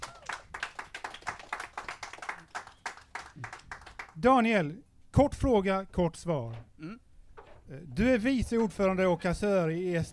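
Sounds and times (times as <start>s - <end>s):
small audience clapping: 0.0s - 4.2s
speech: 4.2s - 7.0s, 7.7s - 10.1s.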